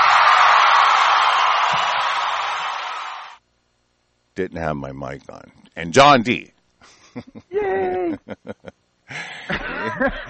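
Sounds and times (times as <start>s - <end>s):
faint whoops: 0.0s - 3.3s
audience applause: 0.0s - 3.4s
speech: 4.4s - 10.2s
laughter: 6.8s - 10.2s.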